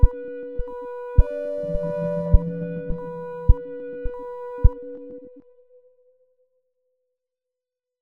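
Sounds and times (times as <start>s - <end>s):
sine wave tone: 0.0s - 5.4s.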